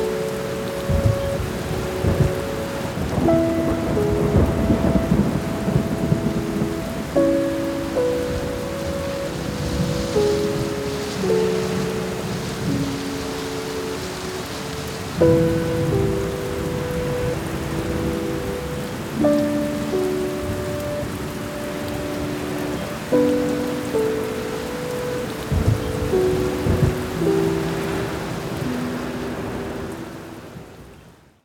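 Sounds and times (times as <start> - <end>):
rain: 0.0 - 31.4
sad piano music: 0.0 - 31.4
thunderstorm: 0.9 - 2.4, 3.0 - 6.9, 25.5 - 27.1.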